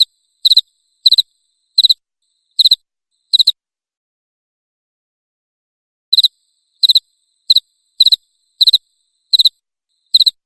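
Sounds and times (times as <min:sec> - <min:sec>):
cricket chirping: 0:00.0 - 0:03.6, 0:06.1 - 0:10.4.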